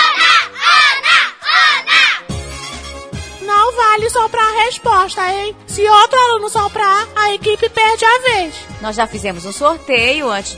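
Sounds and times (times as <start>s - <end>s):
crowd of children chanting, cheering for a contestant: 0.0s - 2.2s
speech: 4.2s - 10.5s.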